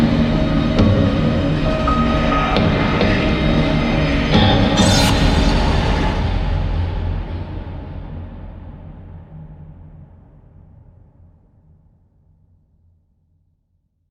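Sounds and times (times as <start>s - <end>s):
creepy atmospheric horror trailer music: 0.0s - 9.8s.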